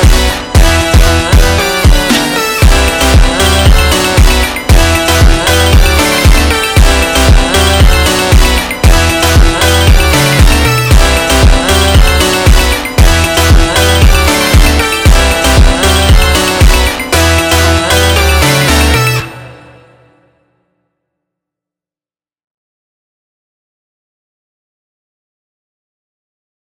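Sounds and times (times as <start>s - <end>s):
slowed funk music: 0.0s - 19.8s.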